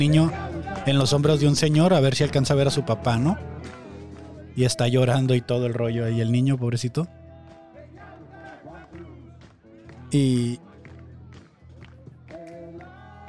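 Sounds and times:
speech: 0:00.0 - 0:03.5, 0:04.6 - 0:07.2, 0:10.1 - 0:10.7
crowd applauding: 0:02.2 - 0:04.6, 0:07.1 - 0:13.2.

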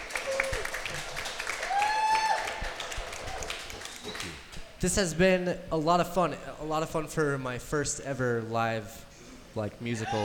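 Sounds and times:
round of applause: 0:00.0 - 0:04.6
speech: 0:04.8 - 0:09.0, 0:09.6 - 0:10.2.

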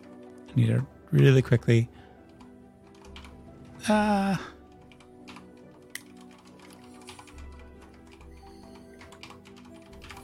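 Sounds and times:
speech: 0:00.5 - 0:02.0, 0:03.8 - 0:04.6
soft computer keyboard typing: 0:02.2 - 0:03.8, 0:04.6 - 0:10.2.

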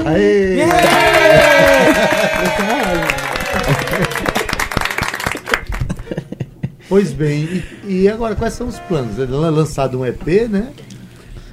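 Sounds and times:
speech: 0:00.0 - 0:04.3, 0:06.9 - 0:10.8
laughter: 0:00.6 - 0:04.7, 0:05.6 - 0:07.6
applause and clapping: 0:00.6 - 0:06.1.

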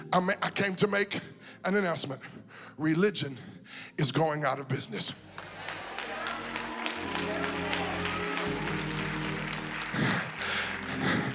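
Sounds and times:
speech: 0:00.1 - 0:05.5, 0:07.0 - 0:07.7
brief audience clapping: 0:05.3 - 0:11.3.

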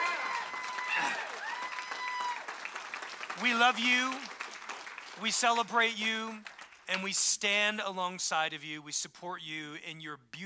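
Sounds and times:
audience clapping for moms: 0:00.0 - 0:07.2
speech: 0:03.4 - 0:04.3, 0:05.2 - 0:10.4.

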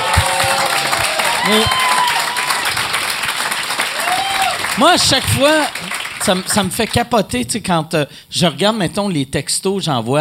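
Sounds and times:
crowd cheering and whooping: 0:00.0 - 0:04.8
crowd applauding: 0:00.0 - 0:07.0
speech: 0:01.5 - 0:01.8, 0:04.8 - 0:10.2.

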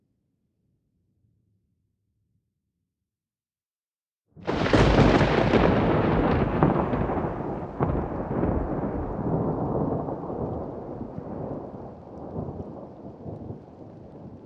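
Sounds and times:
thunder over the sea: 0:04.4 - 0:14.4.

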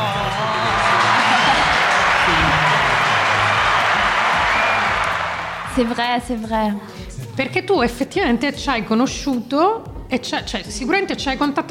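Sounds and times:
audience applause: 0:00.0 - 0:06.3
speech: 0:05.8 - 0:11.6.

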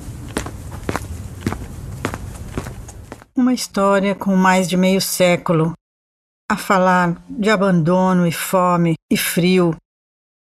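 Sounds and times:
light quick footsteps hurrying along a street: 0:00.0 - 0:03.3
speech: 0:03.4 - 0:05.8, 0:06.5 - 0:09.8.

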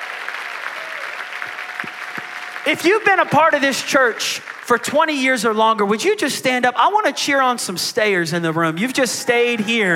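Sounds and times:
audience clapping: 0:00.0 - 0:05.8
speech: 0:02.6 - 0:09.9.

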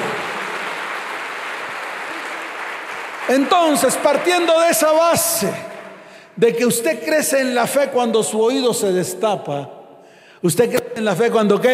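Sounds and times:
audience applauding: 0:00.0 - 0:06.2
speech: 0:03.3 - 0:05.7, 0:06.4 - 0:09.8, 0:10.4 - 0:11.7.

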